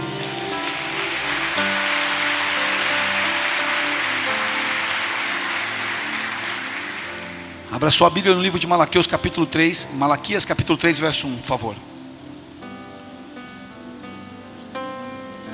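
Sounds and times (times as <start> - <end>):
audience applause: 0.0 - 7.9
soft held keyboard chords: 0.0 - 15.5
speech: 7.8 - 12.0.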